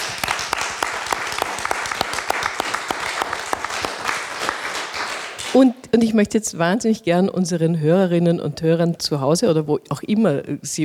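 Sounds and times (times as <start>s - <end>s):
audience applause: 0.0s - 5.6s
speech: 5.6s - 10.8s.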